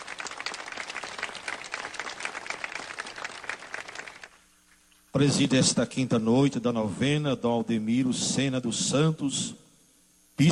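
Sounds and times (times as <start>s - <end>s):
warm round of applause: 0.0s - 4.4s
speech: 5.2s - 9.6s.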